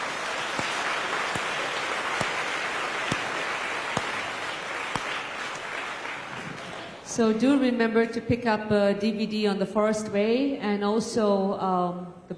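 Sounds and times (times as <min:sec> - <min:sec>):
crowd applause: 0:00.0 - 0:07.0
speech: 0:07.1 - 0:12.3.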